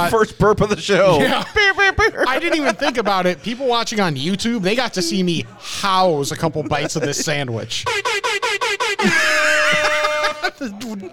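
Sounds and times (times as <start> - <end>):
speech: 0.0 - 8.2, 10.4 - 11.1
laughter: 1.1 - 11.1
loud air horn blasts: 7.9 - 10.6.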